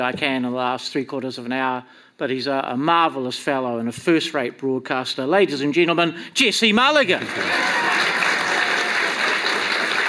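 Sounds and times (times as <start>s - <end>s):
speech: 0.0s - 8.1s
audience applause: 7.2s - 10.0s.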